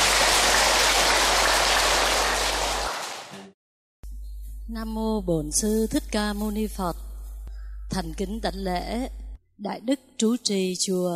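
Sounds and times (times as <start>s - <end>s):
audience applause: 0.0s - 3.5s
speech: 4.7s - 7.1s, 7.9s - 11.1s.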